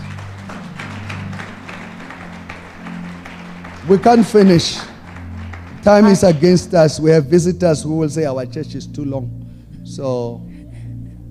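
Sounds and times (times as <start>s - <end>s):
audience clapping: 0.0s - 7.2s
speech: 3.9s - 4.9s, 5.8s - 10.5s.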